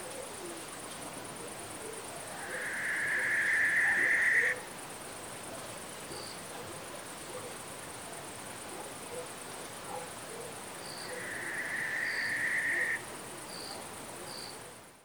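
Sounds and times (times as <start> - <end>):
Tyto alba barn owl calling: 2.5 - 4.6, 11.1 - 13.0.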